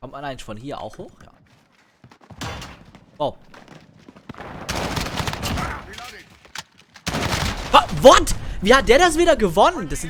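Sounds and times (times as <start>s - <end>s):
speech: 0.0s - 1.3s, 3.2s - 3.6s, 7.9s - 10.0s
gunfire from a shooting video game: 3.6s - 8.6s.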